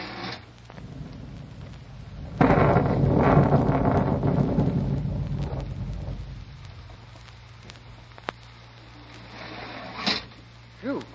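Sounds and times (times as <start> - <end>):
heavy rain: 0.0 - 11.1
thunder rolling: 0.5 - 8.6.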